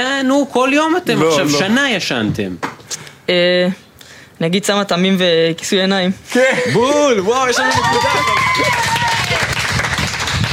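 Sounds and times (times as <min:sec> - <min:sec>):
speech: 0:00.0 - 0:02.7, 0:03.3 - 0:03.8, 0:04.4 - 0:08.9
crowd applauding: 0:07.5 - 0:10.5.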